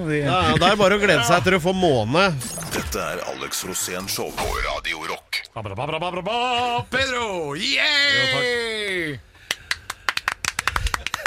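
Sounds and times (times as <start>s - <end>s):
speech: 0.0s - 9.3s
guests clapping: 9.5s - 11.2s
laughter: 10.8s - 11.2s.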